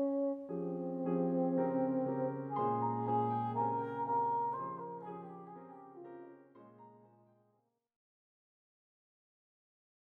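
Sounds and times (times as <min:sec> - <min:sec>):
melody: 0:00.0 - 0:06.7.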